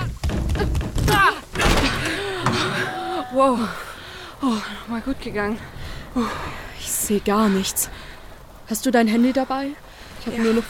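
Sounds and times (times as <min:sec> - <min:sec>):
stuck door being forced open: 0:00.0 - 0:03.2
speech: 0:03.4 - 0:08.1, 0:08.7 - 0:10.6.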